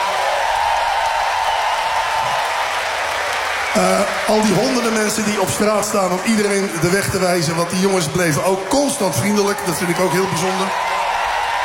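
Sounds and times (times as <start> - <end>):
audience applause: 0.0 - 11.6
speech: 3.7 - 10.9.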